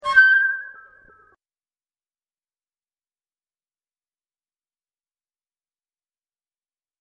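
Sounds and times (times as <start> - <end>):
space flute: 0.0 - 1.4.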